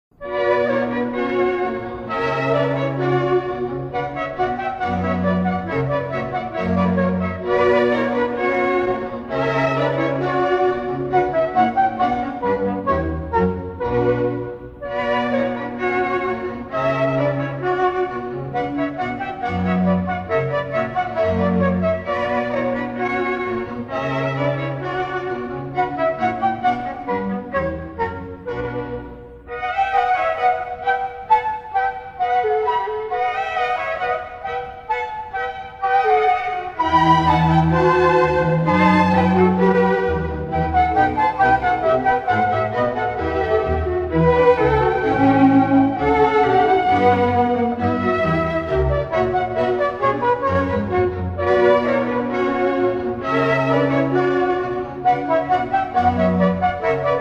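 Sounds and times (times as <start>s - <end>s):
instrumental music: 0.1s - 57.1s.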